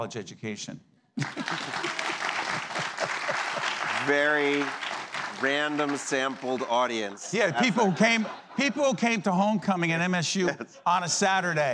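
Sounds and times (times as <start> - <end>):
speech: 0.0 - 1.9, 4.0 - 11.7
audience applause at a university homecoming event: 1.2 - 8.2
laughter: 1.2 - 11.4.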